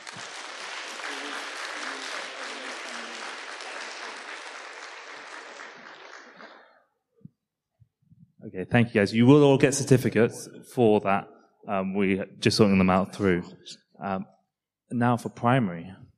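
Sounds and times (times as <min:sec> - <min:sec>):
audience applause: 0:00.0 - 0:06.8
speech: 0:08.5 - 0:16.0.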